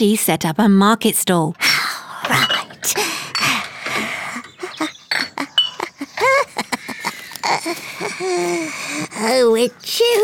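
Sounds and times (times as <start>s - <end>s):
speech: 0.0s - 3.5s, 7.6s - 10.2s
glass bottles clinking and rattling in a box: 2.2s - 6.0s
laughter: 3.0s - 9.2s.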